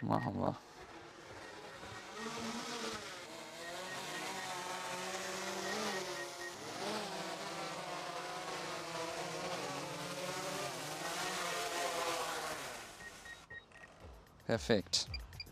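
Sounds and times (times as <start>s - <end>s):
speech: 0.0s - 0.9s, 14.5s - 15.1s
drone flying in to land: 0.0s - 14.4s.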